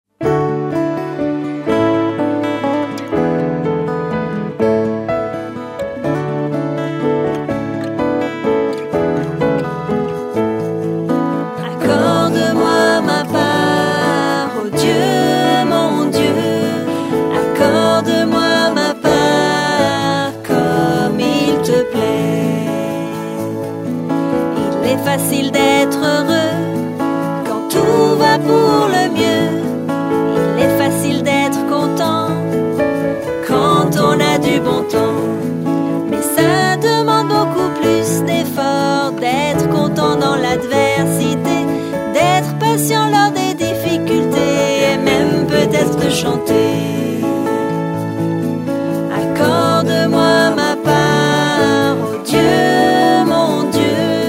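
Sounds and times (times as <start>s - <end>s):
French song: 0.3s - 54.2s.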